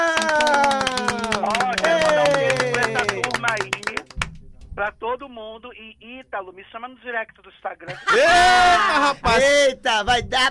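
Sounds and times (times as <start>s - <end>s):
crowd applauding: 0.0s - 4.3s
speech: 4.9s - 10.5s.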